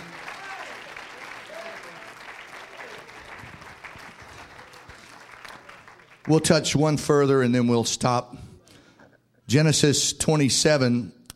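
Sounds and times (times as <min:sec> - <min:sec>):
audience clapping hands: 0:00.0 - 0:06.6
speech: 0:06.3 - 0:08.4, 0:09.5 - 0:11.2.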